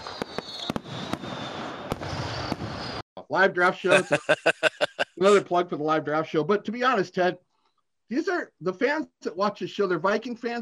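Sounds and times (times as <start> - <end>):
fireworks bangs: 0.0 - 3.0
speech: 3.3 - 7.5, 8.1 - 10.6
laughter: 3.9 - 5.4.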